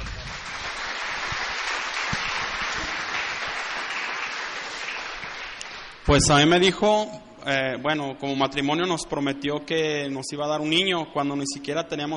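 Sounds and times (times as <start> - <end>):
audience applause: 0.0 - 6.0
speech: 6.1 - 12.1.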